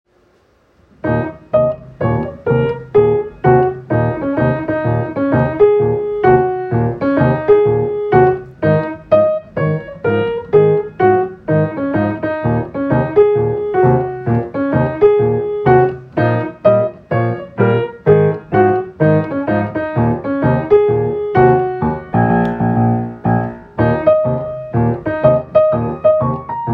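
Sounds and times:
black key blues music: 0:01.0 - 0:26.7.

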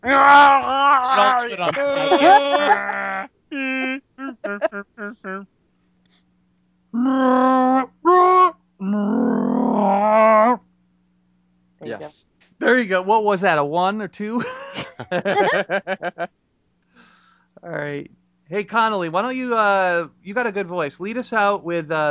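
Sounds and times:
speech: 0:00.0 - 0:03.1, 0:13.0 - 0:16.3, 0:18.6 - 0:22.0
person imitating a Wookiee roar: 0:00.0 - 0:05.4, 0:07.0 - 0:10.6
laughter: 0:00.4 - 0:05.4, 0:14.4 - 0:16.3.

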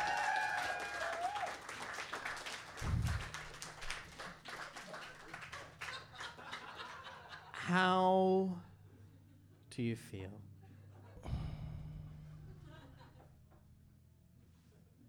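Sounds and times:
audience applause: 0:00.0 - 0:07.0
laughter: 0:04.8 - 0:07.7, 0:12.4 - 0:13.3
speech: 0:07.7 - 0:08.7, 0:09.8 - 0:10.5.

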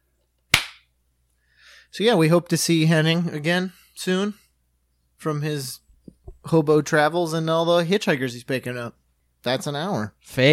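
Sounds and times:
hand clap for recording sync: 0:00.5 - 0:00.9
speech: 0:01.9 - 0:04.4, 0:05.2 - 0:05.8, 0:06.4 - 0:10.5.

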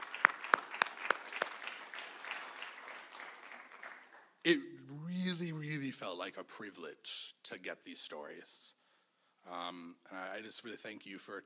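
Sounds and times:
round of applause: 0:00.0 - 0:04.4
speech: 0:04.4 - 0:08.8, 0:09.4 - 0:11.4.

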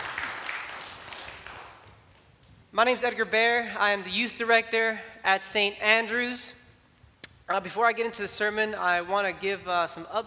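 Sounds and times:
crowd clapping: 0:00.0 - 0:02.3
speech: 0:02.8 - 0:06.6, 0:07.5 - 0:10.2.

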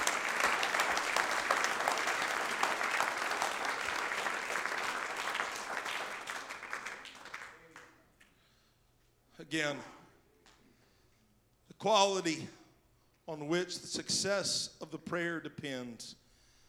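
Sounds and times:
audience clapping hands: 0:00.0 - 0:08.4
speech: 0:09.5 - 0:10.0, 0:11.8 - 0:12.6, 0:13.3 - 0:16.2.

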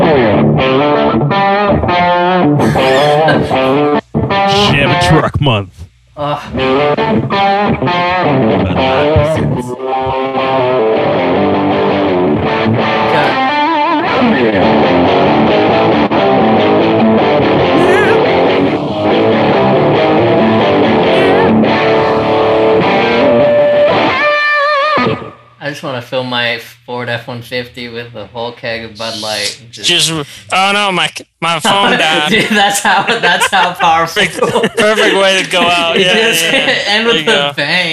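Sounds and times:
overdriven electric guitar in drop D tuning: 0:00.0 - 0:05.2, 0:06.5 - 0:25.6
laughter: 0:02.6 - 0:03.9, 0:08.5 - 0:09.6, 0:31.6 - 0:37.5
speech: 0:05.0 - 0:10.6, 0:25.7 - 0:37.9.

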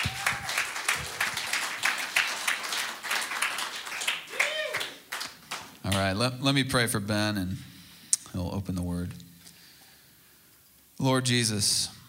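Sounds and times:
audience applause welcoming a speaker to the stage: 0:00.0 - 0:06.1
speech: 0:05.9 - 0:07.7, 0:08.3 - 0:09.2, 0:11.0 - 0:12.0.

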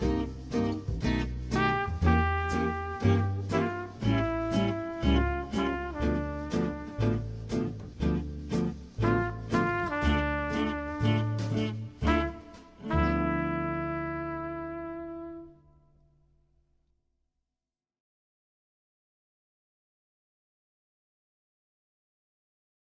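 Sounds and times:
traditional jazz music: 0:00.0 - 0:15.6.

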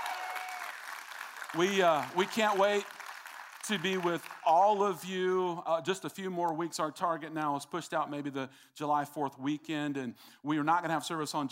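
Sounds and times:
small group clapping: 0:00.0 - 0:04.6
speech: 0:01.5 - 0:03.0, 0:03.7 - 0:11.5.

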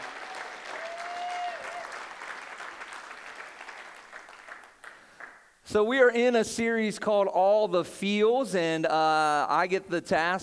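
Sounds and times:
large audience applauding and cheering for pastor: 0:00.0 - 0:05.4
speech: 0:05.7 - 0:10.4.

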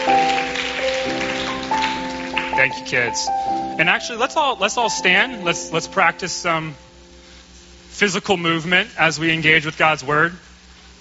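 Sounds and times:
applause for the children: 0:00.0 - 0:03.2
sustained musical tones: 0:00.0 - 0:09.3
speech: 0:02.6 - 0:06.9, 0:08.0 - 0:10.5.

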